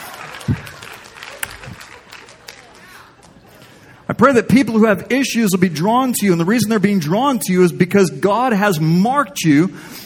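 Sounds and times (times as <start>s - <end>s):
audience applause: 0.0s - 3.7s
speech: 0.5s - 0.7s, 4.2s - 10.0s.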